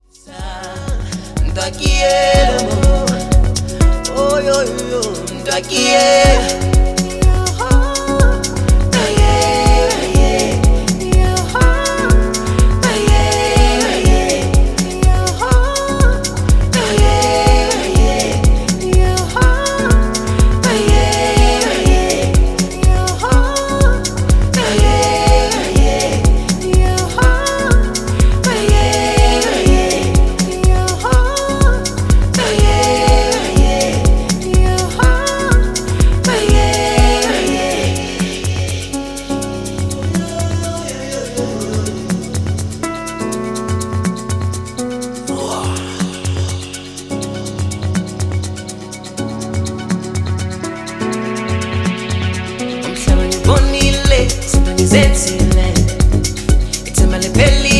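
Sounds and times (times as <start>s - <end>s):
Arabic piano: 0.0s - 57.7s.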